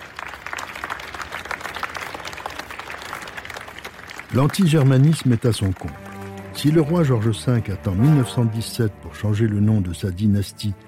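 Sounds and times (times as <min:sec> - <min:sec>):
crowd applauding: 0:00.0 - 0:08.0
speech: 0:04.3 - 0:06.0, 0:06.6 - 0:10.8.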